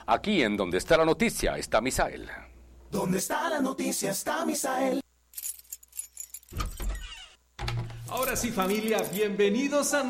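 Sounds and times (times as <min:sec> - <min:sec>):
speech: 0:00.1 - 0:05.0, 0:08.1 - 0:10.0
keys jangling: 0:05.4 - 0:07.1, 0:08.1 - 0:09.2
door opening: 0:06.4 - 0:09.2.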